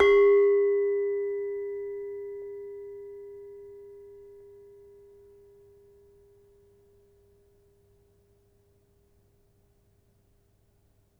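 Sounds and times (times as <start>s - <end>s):
demung gamelan metallophone: 0.0s - 1.0s.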